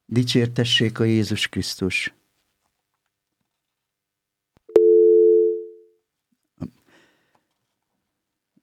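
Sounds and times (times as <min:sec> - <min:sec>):
speech: 0:00.1 - 0:02.2
incoming telephone call tone: 0:04.7 - 0:05.9.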